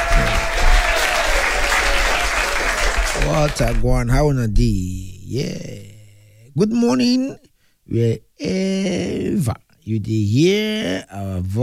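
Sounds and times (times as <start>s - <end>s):
audience applause: 0.0s - 3.8s
speech: 3.4s - 6.0s, 6.6s - 11.6s.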